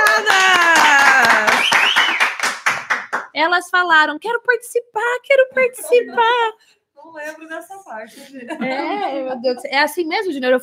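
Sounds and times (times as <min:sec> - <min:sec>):
audience applauding guests: 0:00.0 - 0:03.3
speech: 0:03.4 - 0:10.6
laughter: 0:05.6 - 0:06.5, 0:07.2 - 0:09.9.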